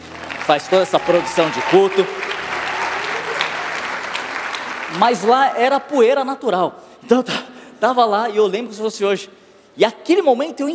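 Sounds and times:
audience applause: 0.0 - 5.8
speech: 0.5 - 2.2, 4.9 - 10.7.

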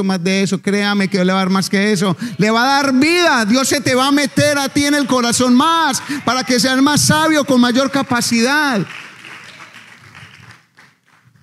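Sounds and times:
speech: 0.0 - 9.1
audience applause: 3.2 - 11.4.

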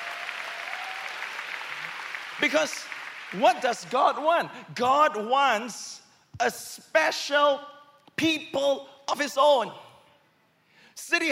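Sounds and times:
audience clapping: 0.0 - 4.5
speech: 2.4 - 9.8, 11.0 - 11.2.

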